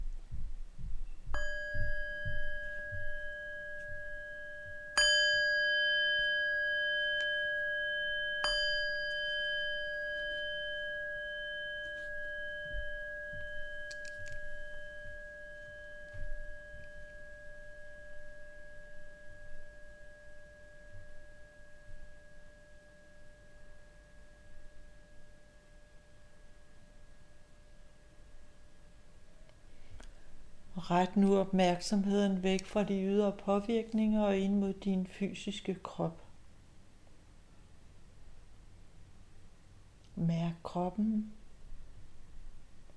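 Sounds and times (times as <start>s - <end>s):
meditation bell ringing: 1.3s - 29.3s
speech: 30.8s - 36.2s, 40.7s - 41.4s.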